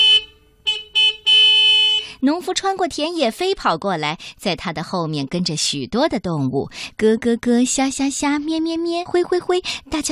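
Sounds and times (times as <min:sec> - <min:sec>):
tractor horn honking: 0:00.0 - 0:02.2
speech: 0:02.2 - 0:10.0.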